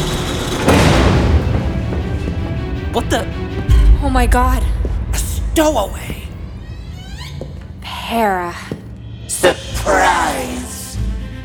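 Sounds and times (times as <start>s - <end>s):
heavy spaceship cargo bay door grinding open: 0.0s - 3.9s, 6.2s - 7.9s
speech: 3.0s - 3.3s, 4.2s - 4.8s, 5.6s - 6.2s, 8.1s - 8.7s, 9.4s - 10.8s.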